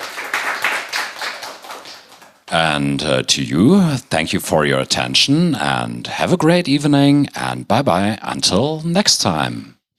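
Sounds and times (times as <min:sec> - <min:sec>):
audience applause at the end of an evening talk: 0:00.0 - 0:02.3
speech: 0:02.5 - 0:09.7.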